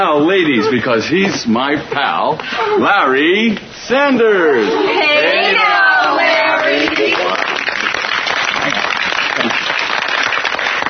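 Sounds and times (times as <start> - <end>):
speech: 0.0 - 5.6
women applauding: 6.0 - 10.8.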